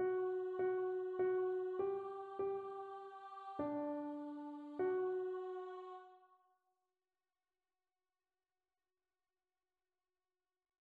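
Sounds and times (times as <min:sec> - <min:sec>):
soprano singing: 0:00.0 - 0:06.2.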